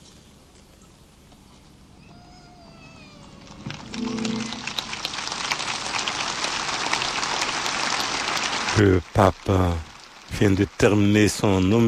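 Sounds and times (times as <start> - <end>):
large crowd applause after the homily: 3.5 - 11.8
brief tonal sound: 3.8 - 5.5
speech: 8.8 - 11.8.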